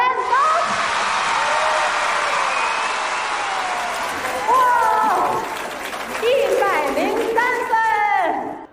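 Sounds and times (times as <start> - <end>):
excited shouts and whoops: 0.2 - 5.4
crowd clapping: 0.8 - 8.6.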